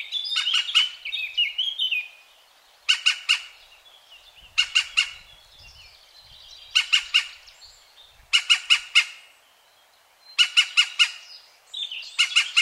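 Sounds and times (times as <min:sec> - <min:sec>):
European green woodpecker calling: 0:00.3 - 0:02.0, 0:02.9 - 0:03.6, 0:04.5 - 0:05.4, 0:06.7 - 0:07.5, 0:08.2 - 0:09.3, 0:10.4 - 0:11.3, 0:12.2 - 0:12.5.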